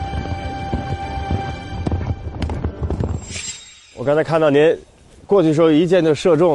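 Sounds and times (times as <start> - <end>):
horse galloping during horseback archery: 0.0 - 3.5
speech: 4.0 - 6.5.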